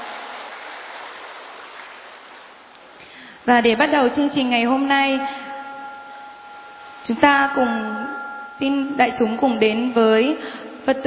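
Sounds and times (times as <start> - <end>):
audience applause: 0.0 - 3.0
speech: 3.4 - 5.4, 7.1 - 8.0, 8.6 - 11.0.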